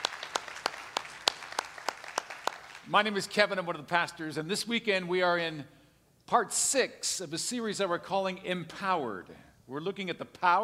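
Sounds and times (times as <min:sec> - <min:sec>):
church congregation clapping rhythmically: 0:00.0 - 0:03.2
speech: 0:02.9 - 0:10.6.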